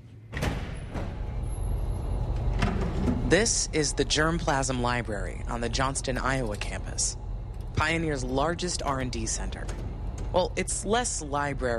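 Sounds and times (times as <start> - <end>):
secure door opening: 0.3 - 3.3, 8.7 - 10.4
speech: 3.3 - 7.2, 7.8 - 11.7.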